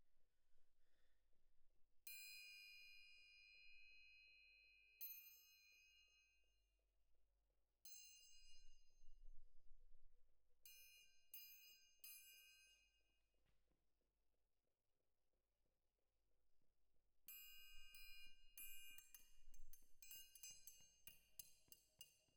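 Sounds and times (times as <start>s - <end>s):
main percussion: 2.1s - 4.3s, 5.0s - 6.1s, 7.9s - 13.0s, 17.3s - 22.3s.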